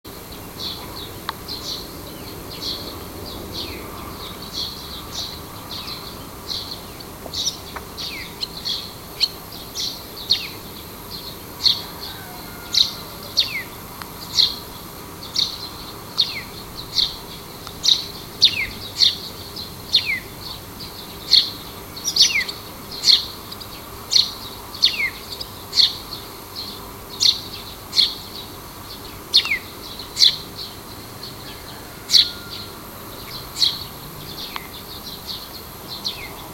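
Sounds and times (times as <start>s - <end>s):
small birds chirping: 0.1s - 36.5s.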